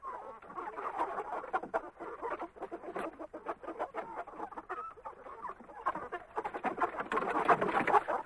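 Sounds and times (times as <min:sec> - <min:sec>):
chickens clucking and squawking in a chicken coop: 0:00.0 - 0:08.2.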